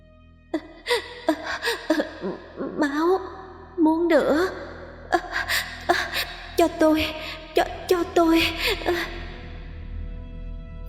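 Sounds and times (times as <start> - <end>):
woman sobbing eerily: 0.6 - 3.3, 4.3 - 9.2
speech: 4.1 - 4.6, 6.7 - 9.2.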